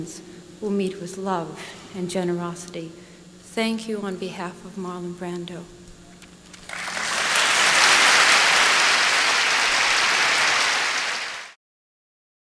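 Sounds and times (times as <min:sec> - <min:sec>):
speech: 0:00.0 - 0:05.8
audience booing: 0:06.7 - 0:11.5.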